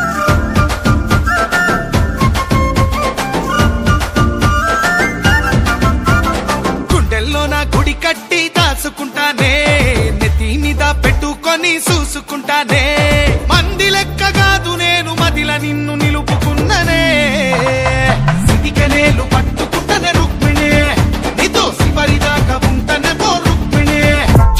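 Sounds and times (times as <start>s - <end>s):
folk song ringtone: 0.2s - 24.5s.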